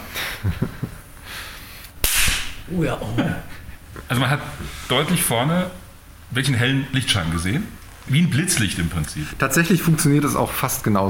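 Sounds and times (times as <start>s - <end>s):
speech: 0.4s - 1.0s, 2.7s - 11.0s
charged capacitor discharge bang: 2.0s - 2.7s.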